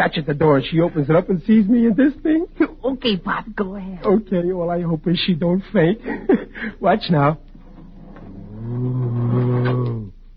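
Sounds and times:
speech: 0.0 - 7.5
person imitating a growl: 7.9 - 10.2.

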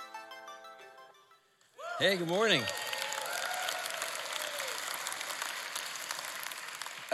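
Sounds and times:
speech: 2.0 - 2.8
audience applause: 2.0 - 7.1.

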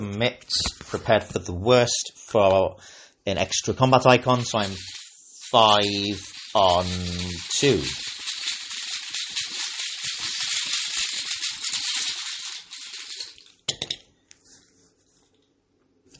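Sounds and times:
speech: 0.2 - 8.1
small die clattering across a tabletop: 13.7 - 14.0.

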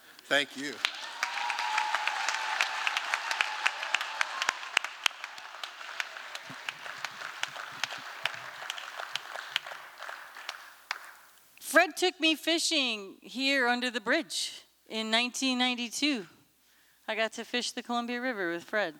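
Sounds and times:
speech: 0.3 - 0.9, 11.9 - 16.4, 17.1 - 18.9
audience applause: 0.3 - 11.2.

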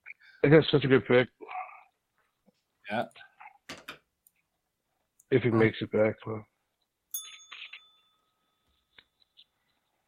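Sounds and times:
speech: 0.4 - 1.4, 2.9 - 3.2, 5.3 - 6.5
bell ringing: 7.1 - 8.9.

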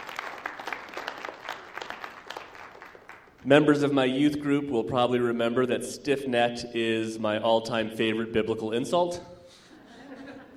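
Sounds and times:
audience applause: 0.0 - 3.4
speech: 3.4 - 9.3
laughter: 9.6 - 10.5.

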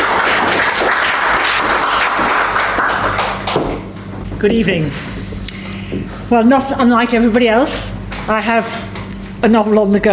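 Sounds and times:
audience clapping to welcome a reader at a reading event: 0.0 - 4.0
speech: 4.4 - 5.1, 5.9 - 10.1.

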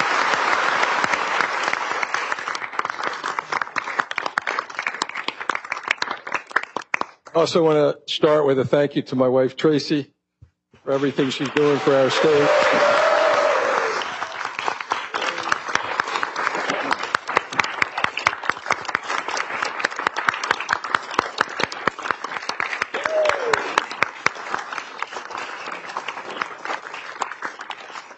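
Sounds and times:
loud applause: 0.0 - 7.2, 10.9 - 28.1
speech: 7.4 - 10.2, 10.9 - 12.9
whoops: 12.2 - 14.5, 22.9 - 23.8.

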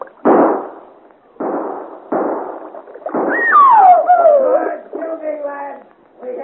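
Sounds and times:
gunshots fired at a boat: 0.2 - 4.0
high wavering cry: 3.3 - 4.9.

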